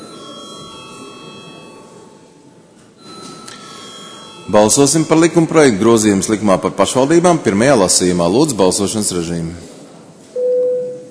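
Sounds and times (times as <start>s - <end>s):
bell ringing in the Latvian parliament before a vote: 0.0s - 5.7s
speech: 4.5s - 9.8s.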